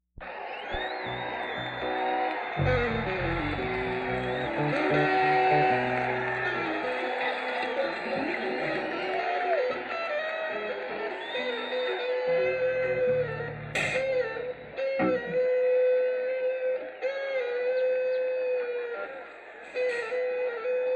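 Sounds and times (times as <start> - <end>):
crowd: 0.2 - 20.9.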